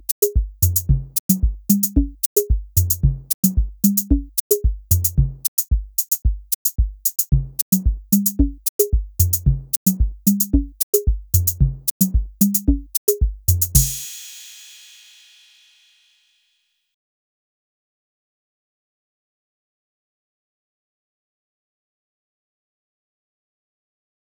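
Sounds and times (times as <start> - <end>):
mini drums: 0.0 - 15.9.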